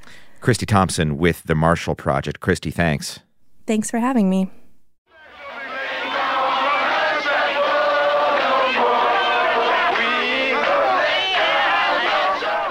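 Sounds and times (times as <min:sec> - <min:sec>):
speech: 0:00.4 - 0:04.6
archival crowd of Howard University students chanting and shouting in Washington: 0:05.1 - 0:12.6.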